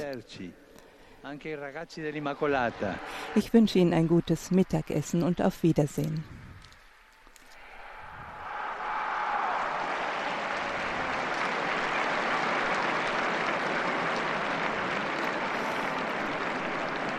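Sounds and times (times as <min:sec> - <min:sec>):
speech: 0:00.1 - 0:00.6, 0:01.2 - 0:06.4
crowd applauding in an open square: 0:02.4 - 0:17.1.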